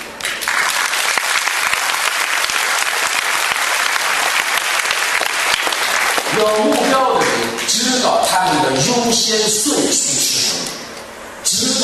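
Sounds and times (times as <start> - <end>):
audience applause: 0.2 - 7.7
speech: 6.4 - 7.0, 7.7 - 10.5.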